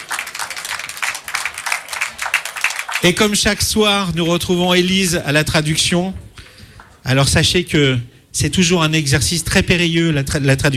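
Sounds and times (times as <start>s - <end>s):
evening show audience applause welcoming a guest singer: 0.0s - 3.7s
speech: 3.0s - 6.2s, 7.0s - 10.7s.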